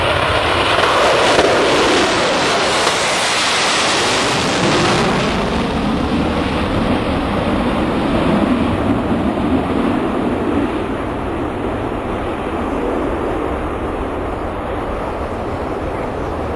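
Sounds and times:
Concorde supersonic jet aircraft: 0:00.0 - 0:16.5.

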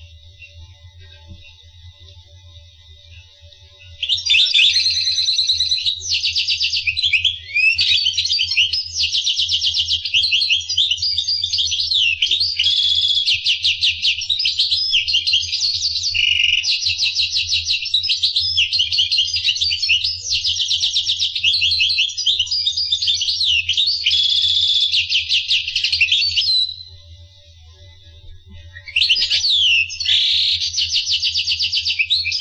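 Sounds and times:
steady low hum: 0:00.0 - 0:06.2, 0:26.7 - 0:29.0
finch song: 0:03.0 - 0:32.3.

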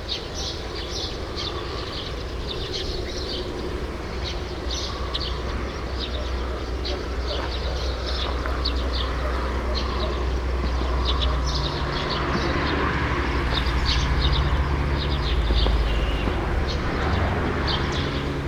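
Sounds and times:
true sparrows chirping: 0:00.0 - 0:18.4.

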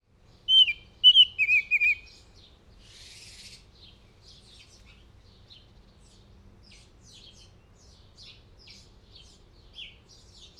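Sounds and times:
northern oriole whistling: 0:00.5 - 0:02.0.

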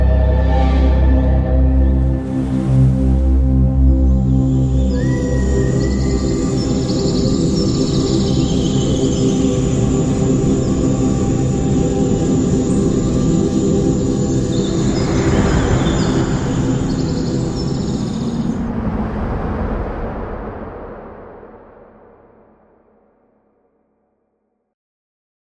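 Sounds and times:
atmospheric music: 0:00.0 - 0:22.4.

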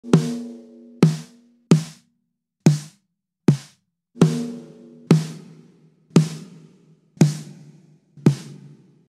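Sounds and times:
snare drum: 0:00.0 - 0:02.1, 0:02.7 - 0:04.5, 0:05.1 - 0:05.6, 0:06.2 - 0:07.6, 0:08.2 - 0:08.9.

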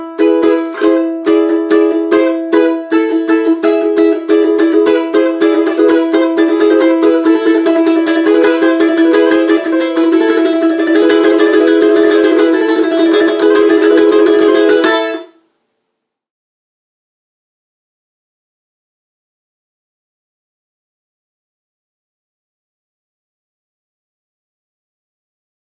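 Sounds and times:
balalaika: 0:00.0 - 0:15.4.

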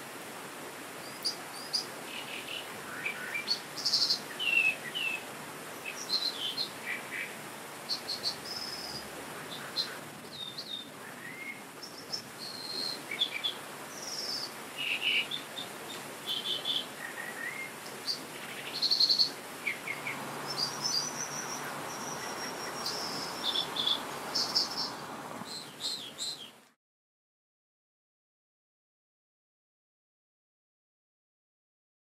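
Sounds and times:
dippers: 0:01.0 - 0:26.6.

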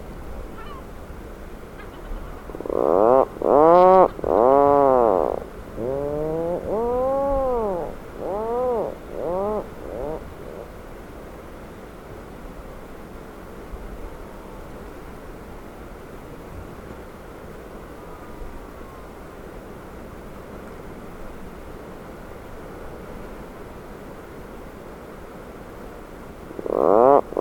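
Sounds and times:
Atlantic puffin groaning calls: 0:02.4 - 0:10.7, 0:26.5 - 0:27.3.

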